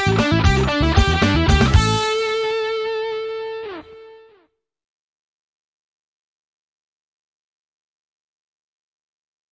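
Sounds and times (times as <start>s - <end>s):
rock-metal lead guitar: 0.0s - 4.4s.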